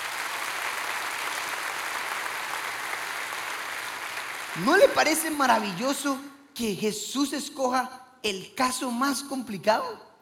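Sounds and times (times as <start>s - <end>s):
audience applause: 0.0s - 5.0s
speech: 4.6s - 10.1s.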